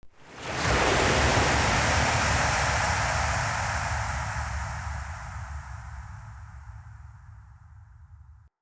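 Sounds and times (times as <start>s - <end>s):
Eternium wave crash: 0.1s - 7.5s.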